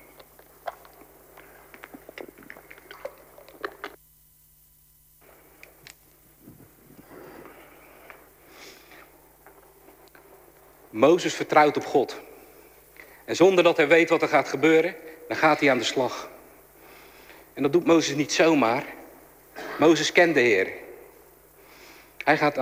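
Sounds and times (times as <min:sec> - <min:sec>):
person sipping a drink: 0:00.1 - 0:04.0, 0:06.4 - 0:10.3
speech: 0:11.0 - 0:12.3, 0:13.3 - 0:16.3, 0:17.6 - 0:19.0, 0:19.8 - 0:20.8, 0:22.3 - 0:22.6.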